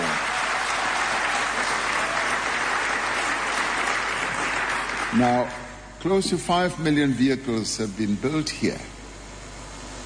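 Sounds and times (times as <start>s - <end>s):
audience applause: 0.0s - 5.5s
speech: 5.1s - 8.9s.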